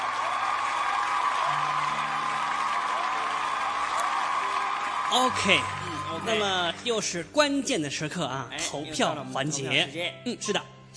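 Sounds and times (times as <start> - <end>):
applause: 0.0 - 7.1
speech: 5.1 - 10.9.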